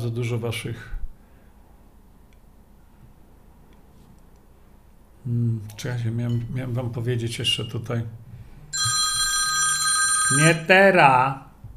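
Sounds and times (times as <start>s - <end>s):
speech: 0.0s - 1.0s, 5.2s - 8.2s, 10.3s - 11.5s
telephone ringing: 8.8s - 10.8s.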